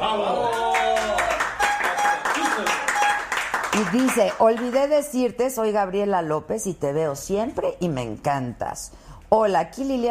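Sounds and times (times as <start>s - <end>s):
applause: 0.4s - 4.9s
speech: 3.8s - 10.0s.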